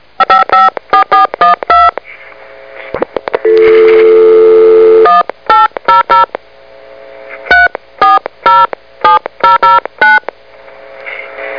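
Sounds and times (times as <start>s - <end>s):
telephone: 0.2s - 2.0s, 3.4s - 6.3s, 7.5s - 10.3s.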